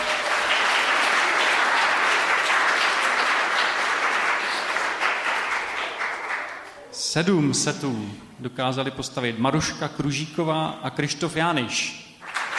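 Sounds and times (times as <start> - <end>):
steady applause from a group: 0.0 - 6.9, 12.2 - 12.5
speech: 7.1 - 12.0.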